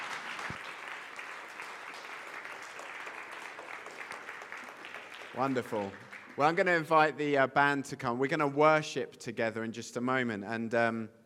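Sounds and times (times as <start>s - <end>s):
audience applause: 0.0s - 6.6s
speech: 5.4s - 11.2s.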